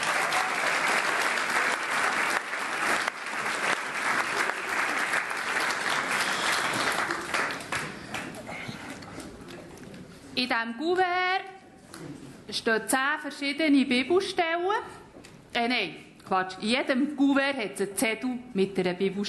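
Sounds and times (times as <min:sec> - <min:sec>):
audience clapping: 0:00.0 - 0:08.7
speech: 0:10.4 - 0:11.4, 0:12.5 - 0:15.0, 0:15.6 - 0:19.2.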